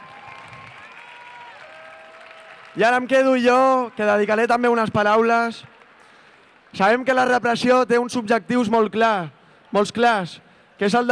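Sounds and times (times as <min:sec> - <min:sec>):
audience applause: 0:00.0 - 0:06.8
speech: 0:02.8 - 0:05.7, 0:06.7 - 0:11.1.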